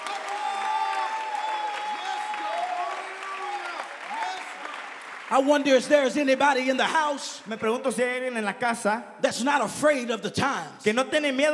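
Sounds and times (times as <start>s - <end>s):
audience clapping: 0.0s - 7.8s
speech: 5.3s - 11.5s.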